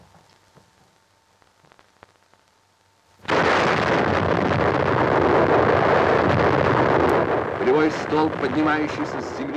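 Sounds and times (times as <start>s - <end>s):
Tsar Bomba nuclear detonation roar at Novaya Zemlya, archival Soviet recording: 3.2s - 9.5s.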